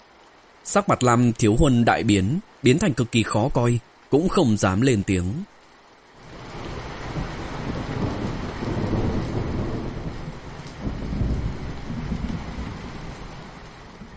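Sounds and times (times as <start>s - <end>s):
speech: 0.7s - 5.6s
deep rolling thunder clap: 6.2s - 14.1s.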